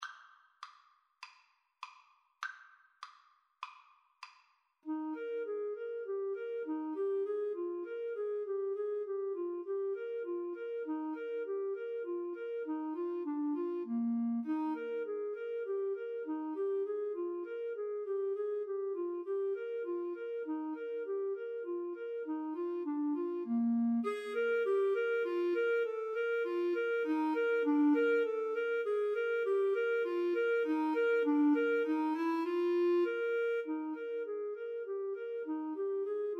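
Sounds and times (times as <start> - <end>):
flute and clarinet duet melody: 4.9 - 36.3.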